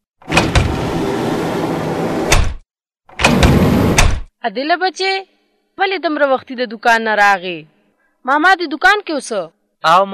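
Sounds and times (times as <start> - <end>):
shop door being pulled shut: 0.2 - 2.5, 3.2 - 4.2
speech: 4.4 - 10.1.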